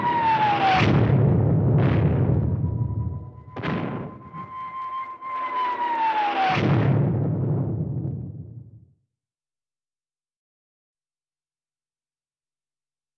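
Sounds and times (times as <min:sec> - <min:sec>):
whistling falling bombs: 0:00.0 - 0:07.8
bomb explosions: 0:00.0 - 0:08.8.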